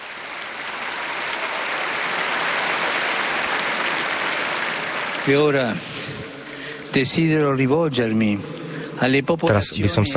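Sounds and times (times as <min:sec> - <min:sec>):
crowd applause: 0:00.0 - 0:07.4
speech: 0:05.2 - 0:10.1.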